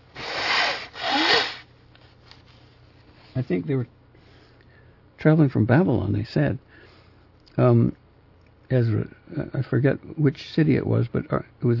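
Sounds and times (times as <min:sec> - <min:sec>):
nose blowing: 0:00.0 - 0:01.7
speech: 0:03.4 - 0:04.0, 0:05.2 - 0:06.9, 0:07.6 - 0:08.0, 0:08.7 - 0:11.7.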